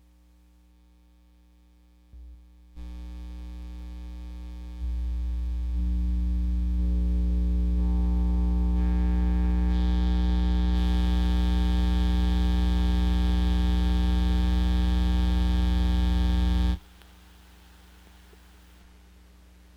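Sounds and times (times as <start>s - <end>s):
modified GE-7 equalizer pedal comparison: 2.2s - 17.2s.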